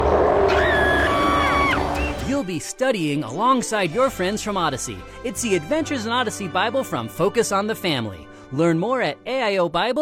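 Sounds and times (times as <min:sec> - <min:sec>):
dragon roar: 0:00.0 - 0:02.2
speech: 0:02.4 - 0:10.0.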